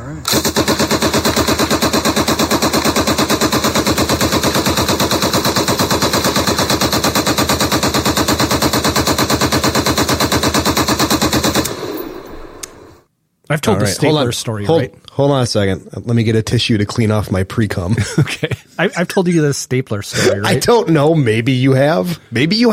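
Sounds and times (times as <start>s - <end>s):
M60 machine gun firing a 100-round belt: 0.2s - 12.9s
speech: 13.6s - 22.7s
laughter: 17.9s - 19.1s, 20.1s - 20.9s.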